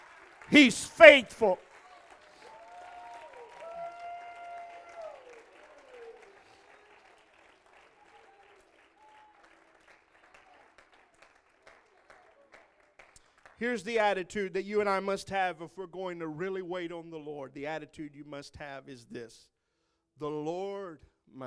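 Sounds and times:
audience clapping: 0.0s - 13.6s
raised voices calling out: 0.5s - 1.6s
speech: 0.5s - 1.7s, 13.6s - 19.5s, 20.2s - 21.4s.

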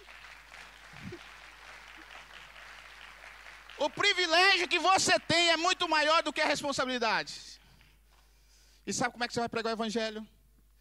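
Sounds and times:
audience applause: 0.0s - 6.4s
speech: 3.8s - 7.6s, 8.8s - 10.4s.

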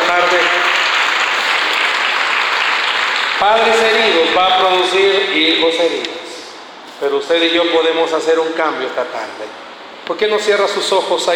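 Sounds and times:
audience applause: 0.0s - 4.0s
speech: 3.4s - 6.2s, 7.0s - 11.3s.

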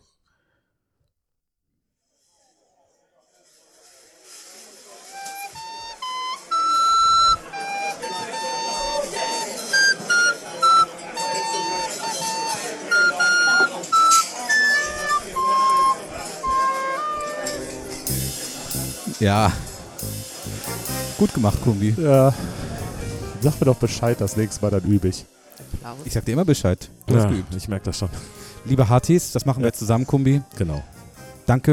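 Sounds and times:
flute being played: 5.0s - 24.7s
speech: 19.2s - 19.7s, 21.2s - 22.5s, 23.4s - 30.9s, 31.5s - 31.7s.

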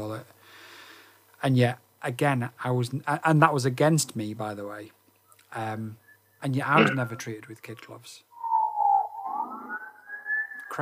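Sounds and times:
speech: 1.4s - 8.3s
police car siren passing by: 8.4s - 10.8s.

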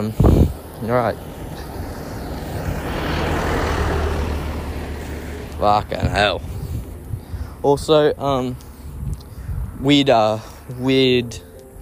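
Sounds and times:
speech: 0.0s - 1.4s, 5.6s - 6.5s, 7.6s - 8.6s, 9.8s - 11.5s
truck driving past outside: 0.0s - 7.9s.

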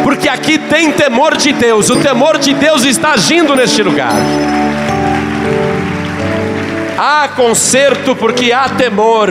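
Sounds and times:
sustained keyboard or organ chords: 0.0s - 9.2s
speech: 0.2s - 5.7s, 7.0s - 9.2s
audience applause: 1.9s - 8.6s.

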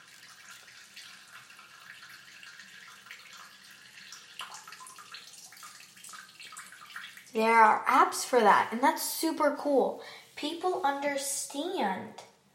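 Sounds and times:
running water: 0.0s - 8.6s
speech: 7.4s - 12.2s.

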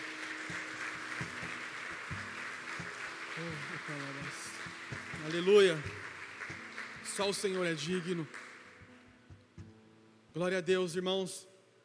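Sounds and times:
audience clapping: 0.0s - 9.2s
speech: 3.4s - 4.5s, 5.2s - 6.0s, 7.2s - 8.4s, 10.4s - 11.5s.

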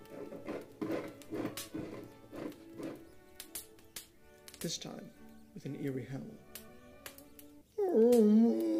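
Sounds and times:
scratching noise: 0.0s - 3.0s
speech: 4.6s - 6.5s, 8.0s - 8.6s.

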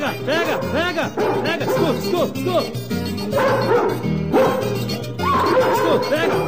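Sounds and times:
speech: 0.1s - 4.1s, 4.8s - 6.4s
dog barking: 0.4s - 2.0s, 3.3s - 6.4s.

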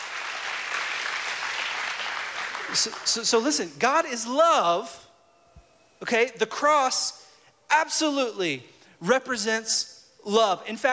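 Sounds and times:
audience applauding: 0.0s - 3.3s
speech: 2.7s - 5.1s, 6.0s - 10.9s.

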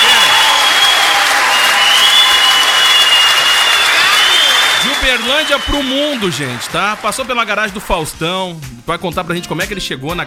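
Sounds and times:
applause: 0.0s - 8.1s
speech: 5.1s - 10.2s.

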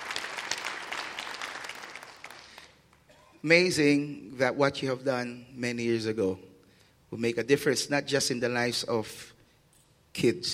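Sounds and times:
round of applause: 0.0s - 3.0s
speech: 3.4s - 6.5s, 7.1s - 9.3s, 10.2s - 10.5s.

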